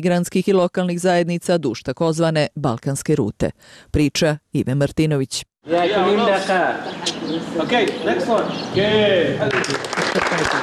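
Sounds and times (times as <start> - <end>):
speech: 0.0 - 10.6
people clapping in the courtyard of the Centre for Cultural Decontamination: 9.4 - 10.6
people laughing in the courtyard of the Centre for Cultural Decontamination: 9.4 - 10.6.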